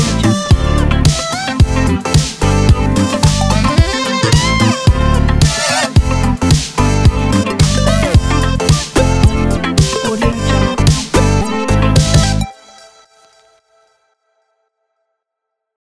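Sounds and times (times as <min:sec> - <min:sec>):
uplifting pop funk music: 0:00.0 - 0:12.6.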